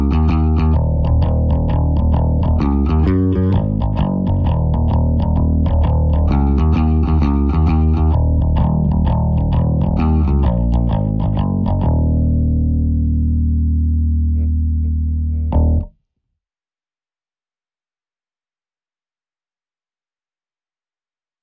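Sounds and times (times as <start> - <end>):
bass: 0.0 - 16.0.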